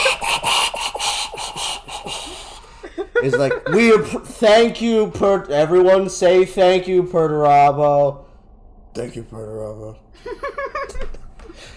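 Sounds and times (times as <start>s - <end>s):
voice imitating a failed raspy whistle: 0.0s - 2.7s
laughter: 0.0s - 4.3s, 10.2s - 11.1s
speech: 3.2s - 8.2s, 9.0s - 11.1s.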